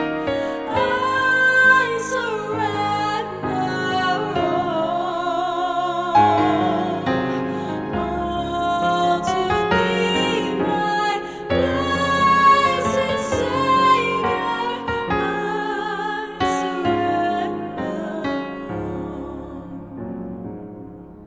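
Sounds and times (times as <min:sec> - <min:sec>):
soprano choir: 0:00.0 - 0:21.2.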